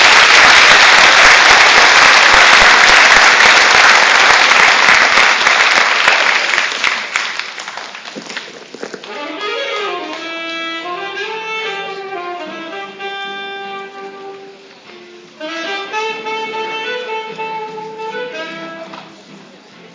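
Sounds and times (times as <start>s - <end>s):
audience applause: 0.0s - 9.1s.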